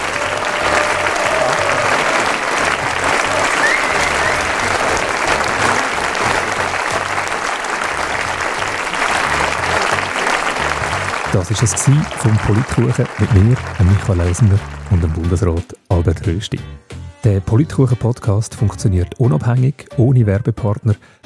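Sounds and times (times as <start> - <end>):
audience applause: 0.0 - 15.4
speech: 11.5 - 21.2.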